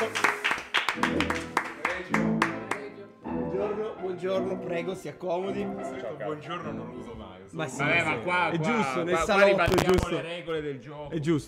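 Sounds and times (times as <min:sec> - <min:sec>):
audience applause: 0:00.0 - 0:02.8
speech: 0:04.2 - 0:11.4.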